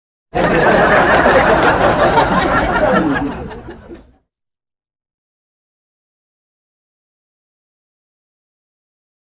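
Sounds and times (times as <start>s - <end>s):
crowd laughing: 0.4s - 4.3s.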